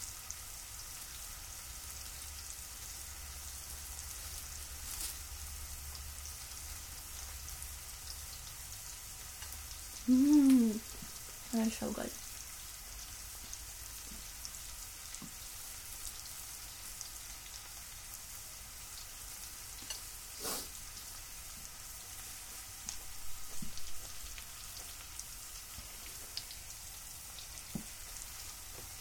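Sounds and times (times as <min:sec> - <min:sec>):
food frying in a pan: 0:00.0 - 0:28.9
speech: 0:11.6 - 0:12.2.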